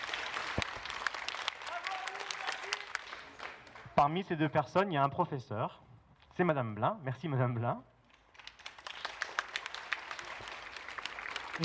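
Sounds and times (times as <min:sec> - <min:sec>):
audience applause: 0:00.0 - 0:03.9, 0:08.4 - 0:11.6
speech: 0:04.0 - 0:05.8, 0:06.4 - 0:07.9.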